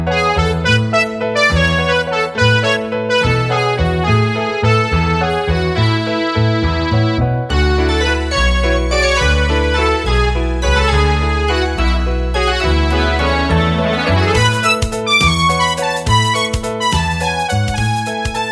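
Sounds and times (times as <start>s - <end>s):
waltz music: 0.1s - 18.5s.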